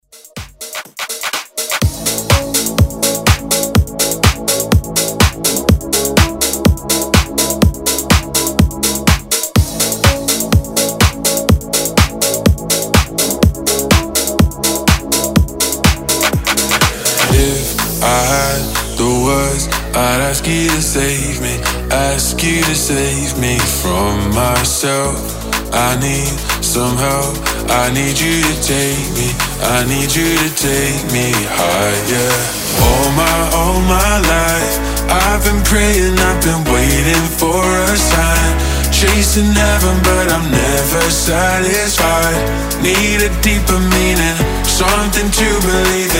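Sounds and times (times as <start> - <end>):
house music: 0.0 - 46.1.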